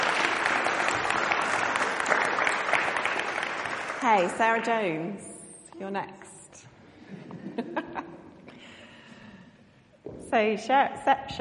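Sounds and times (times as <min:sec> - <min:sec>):
audience clapping: 0:00.0 - 0:05.1
speech: 0:04.0 - 0:06.2, 0:07.6 - 0:08.1, 0:10.3 - 0:11.3
laughter: 0:06.9 - 0:08.6.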